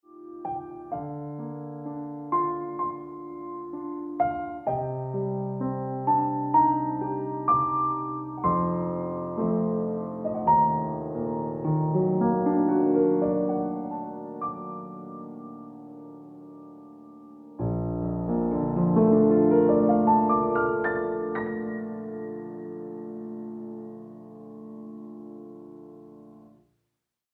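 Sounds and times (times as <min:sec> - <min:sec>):
piano music: 0:00.0 - 0:26.6.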